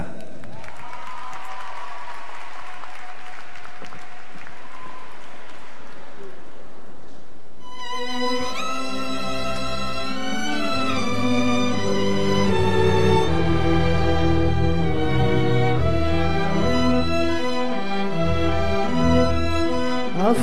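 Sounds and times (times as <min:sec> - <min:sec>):
audience applause: 0:00.0 - 0:07.0
music with sustained rising tones: 0:07.6 - 0:20.4.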